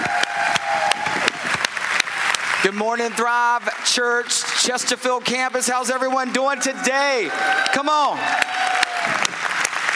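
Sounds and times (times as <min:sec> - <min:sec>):
audience applause: 0:00.0 - 0:05.3, 0:06.5 - 0:09.9
speech: 0:02.6 - 0:08.6.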